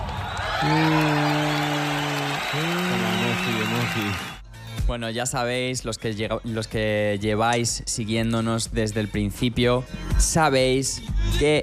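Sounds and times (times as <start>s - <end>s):
applause: 0.0s - 4.4s
speech: 0.6s - 1.1s, 4.0s - 11.6s.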